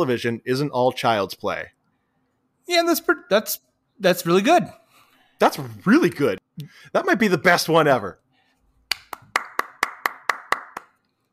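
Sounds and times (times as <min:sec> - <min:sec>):
speech: 0:00.0 - 0:01.8, 0:02.7 - 0:04.8, 0:05.4 - 0:08.2
hand clapping: 0:08.9 - 0:11.1.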